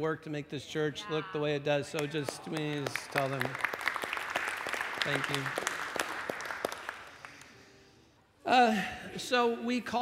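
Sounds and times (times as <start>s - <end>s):
speech: 0.0s - 3.8s, 5.0s - 5.8s, 8.5s - 10.0s
audience applause: 2.0s - 7.5s.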